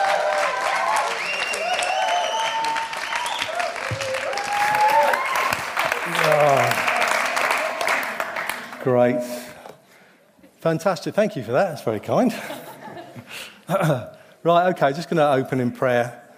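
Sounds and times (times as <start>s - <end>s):
church congregation applauding to welcome a speaker: 0.0s - 9.6s
speech: 8.8s - 9.4s, 10.6s - 12.6s, 13.7s - 16.2s.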